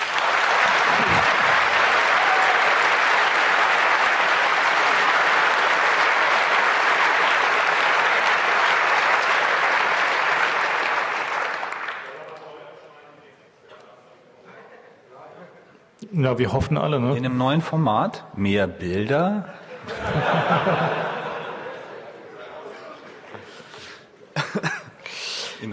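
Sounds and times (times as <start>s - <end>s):
audience applause: 0.0s - 12.4s
speech: 16.2s - 21.1s
laughter: 19.6s - 23.6s, 24.3s - 25.0s.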